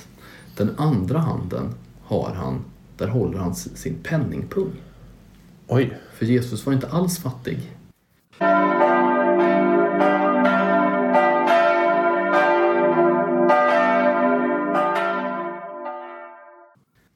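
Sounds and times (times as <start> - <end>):
speech: 0.6 - 4.9, 5.7 - 7.8
bells ringing: 8.4 - 16.8.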